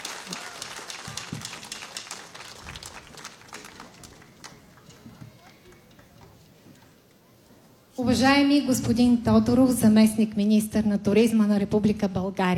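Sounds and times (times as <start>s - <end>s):
audience applause: 0.0s - 6.5s
speech: 8.0s - 12.5s.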